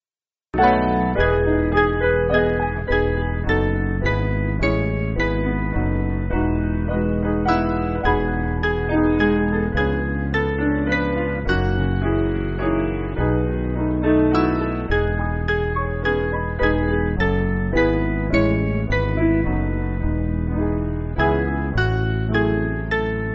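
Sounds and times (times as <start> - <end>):
piano: 0.6 - 23.3.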